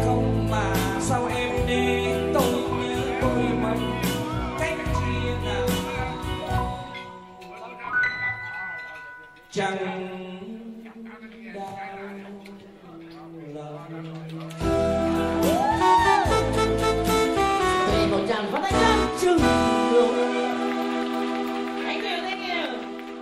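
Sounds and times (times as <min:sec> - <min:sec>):
Vietnamese wedding ringtone melody: 0:00.1 - 0:10.1, 0:14.6 - 0:23.2.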